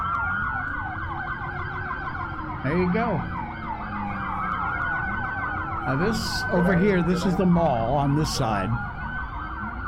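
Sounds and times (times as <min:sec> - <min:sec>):
low rumble of traffic: 0:00.0 - 0:09.8
police car sirens wailing: 0:00.0 - 0:09.8
speech: 0:02.6 - 0:03.4, 0:05.9 - 0:08.9.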